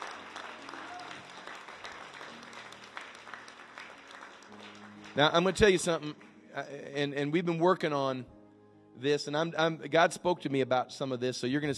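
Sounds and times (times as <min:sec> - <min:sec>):
audience clapping hands: 0:00.0 - 0:06.4
speech: 0:05.2 - 0:08.4, 0:09.0 - 0:11.7.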